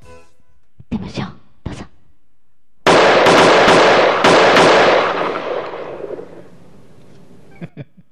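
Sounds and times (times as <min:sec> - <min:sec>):
speech: 0:00.9 - 0:01.3
gunshots: 0:02.9 - 0:06.8.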